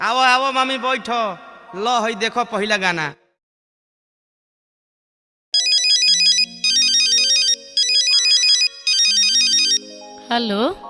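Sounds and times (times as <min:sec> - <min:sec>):
speech: 0:00.0 - 0:03.2, 0:10.3 - 0:10.8
low synthetic melody: 0:05.6 - 0:10.8
phone ringtone: 0:05.6 - 0:10.8.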